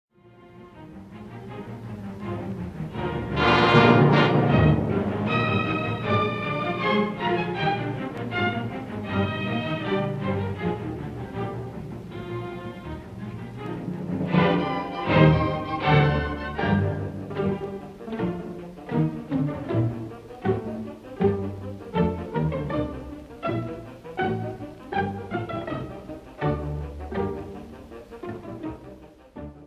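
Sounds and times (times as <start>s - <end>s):
orchestra playing a march allegro: 0.2s - 29.6s.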